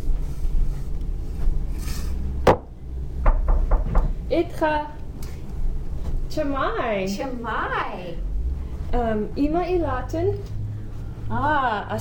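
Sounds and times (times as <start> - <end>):
steady low rumble: 0.2 - 11.9
sharp wooden knocks on a door: 2.5 - 2.7, 3.2 - 4.2
speech: 4.4 - 5.0, 6.4 - 8.3, 8.9 - 10.6, 11.3 - 11.9.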